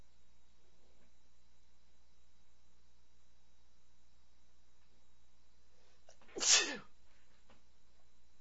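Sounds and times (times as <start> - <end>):
man sneezing: 6.4 - 6.9.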